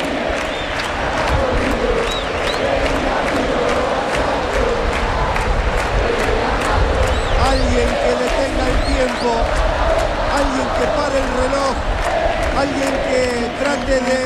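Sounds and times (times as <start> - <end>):
huge stadium crowd roaring and shouting: 0.0 - 14.2
whistles: 0.4 - 0.9, 2.0 - 2.7.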